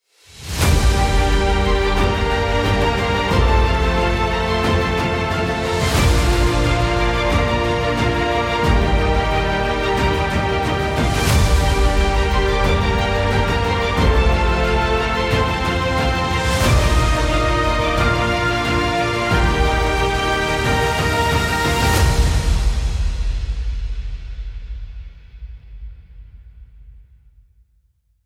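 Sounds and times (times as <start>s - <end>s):
fantasy kingdom music: 0.4s - 23.8s.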